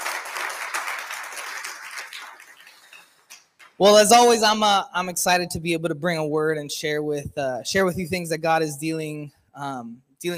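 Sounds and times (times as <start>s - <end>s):
audience clapping: 0.0s - 3.8s
speech: 3.8s - 10.3s.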